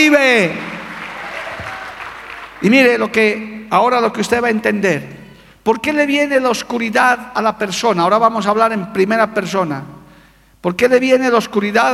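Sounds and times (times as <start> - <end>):
speech: 0.0 - 0.7, 2.6 - 10.0, 10.6 - 11.9
audience applauding: 0.0 - 3.0.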